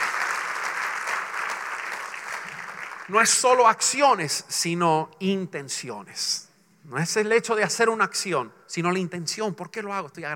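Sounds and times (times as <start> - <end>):
audience applause: 0.0 - 3.3
speech: 3.1 - 10.3.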